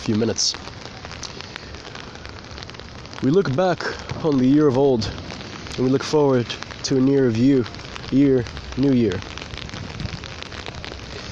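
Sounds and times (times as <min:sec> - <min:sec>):
speech: 0:00.0 - 0:00.9, 0:03.2 - 0:05.2, 0:05.8 - 0:09.3
fireworks exploding: 0:00.0 - 0:11.3.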